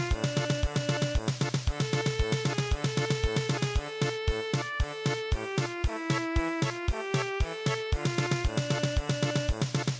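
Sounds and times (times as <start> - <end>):
German polka music: 0.0 - 9.9.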